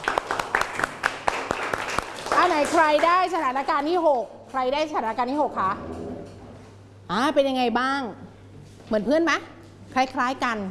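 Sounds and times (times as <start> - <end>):
scattered classroom clapping for a classmate: 0.0 - 3.4
speech: 2.6 - 6.0, 7.1 - 8.2, 8.9 - 10.6.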